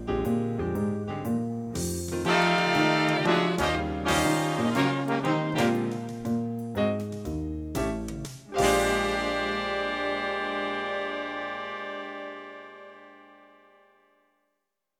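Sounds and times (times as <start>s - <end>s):
B-flat blues backing track for wind improvisation: 0.0s - 13.2s.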